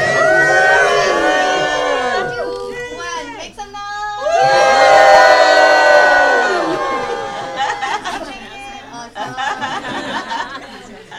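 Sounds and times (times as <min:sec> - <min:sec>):
laughter: 0:00.0 - 0:02.6, 0:05.8 - 0:11.1
crowd cheering and whooping at a live event: 0:00.0 - 0:02.7, 0:04.2 - 0:08.1.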